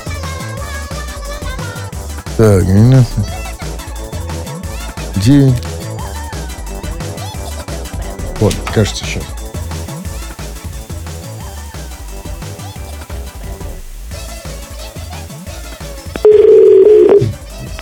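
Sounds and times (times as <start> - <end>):
speech: 2.4 - 3.4, 5.2 - 5.7, 8.4 - 9.4
telephone ringing tone during a call: 16.2 - 17.4.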